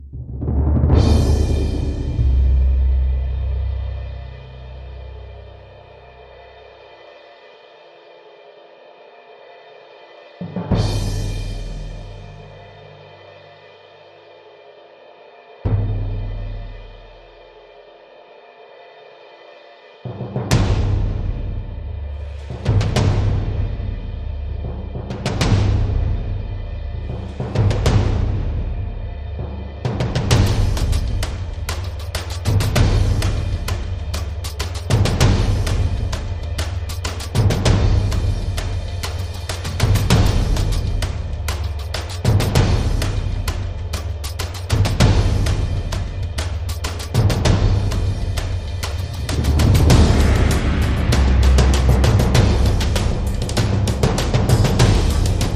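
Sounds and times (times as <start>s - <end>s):
drums: 0.0s - 7.5s, 9.4s - 14.7s, 15.6s - 18.0s, 19.1s - 55.5s
sound effects: 48.9s - 53.6s.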